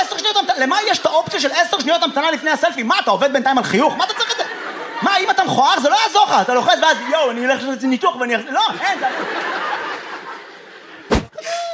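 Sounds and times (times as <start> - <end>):
speech: 0.6 - 4.2, 5.0 - 9.8
crowd laughter: 3.8 - 7.7, 8.4 - 11.7
audience member sneezing: 11.1 - 11.7.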